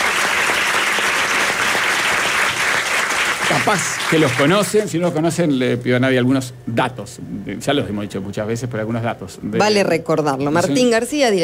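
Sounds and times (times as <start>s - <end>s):
audience applause: 0.0s - 4.9s
speech: 3.5s - 11.4s.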